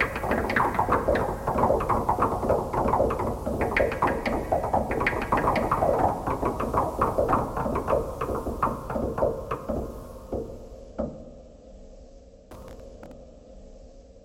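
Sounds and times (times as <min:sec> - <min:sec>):
knocking thread noise: 0:00.0 - 0:11.2.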